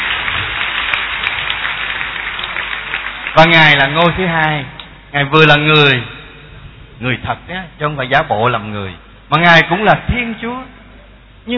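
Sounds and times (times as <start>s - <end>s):
audience applause: 0.0s - 4.4s
speech: 3.4s - 6.1s, 7.0s - 10.8s.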